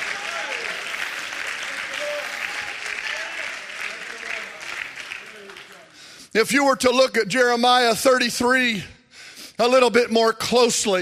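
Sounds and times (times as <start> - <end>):
audience clapping: 0.0 - 6.3
speech: 6.3 - 8.9, 9.6 - 11.0.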